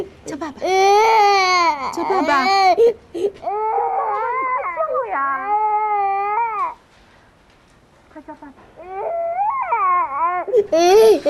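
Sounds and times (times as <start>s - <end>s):
speech: 0.0s - 3.8s, 8.3s - 9.1s, 10.5s - 11.2s
young child fussing and crying: 0.8s - 6.8s, 8.8s - 11.2s.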